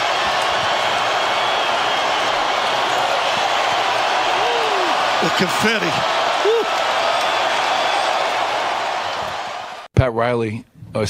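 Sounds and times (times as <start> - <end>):
large arena crowd cheering: 0.0 - 9.9
speech: 5.2 - 6.8, 10.0 - 11.0.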